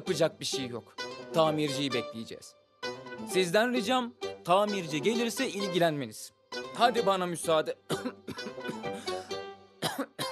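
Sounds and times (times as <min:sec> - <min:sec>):
speech: 0:00.0 - 0:02.6, 0:03.2 - 0:08.2
person coughing from a tickle in the throat: 0:07.9 - 0:10.3.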